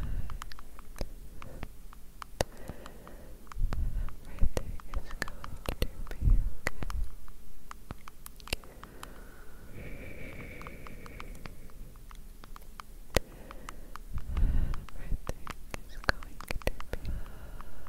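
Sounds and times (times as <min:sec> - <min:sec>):
soft low breathy blowing: 0:00.0 - 0:01.8, 0:02.4 - 0:06.9, 0:08.6 - 0:12.1, 0:13.1 - 0:15.1, 0:17.0 - 0:17.8
gentle clicky tapping: 0:00.0 - 0:17.8.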